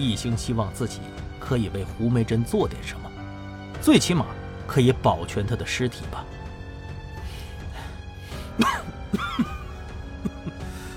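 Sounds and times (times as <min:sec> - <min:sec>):
speech: 0:00.0 - 0:03.1, 0:03.8 - 0:06.3
violent coughing: 0:08.5 - 0:10.6.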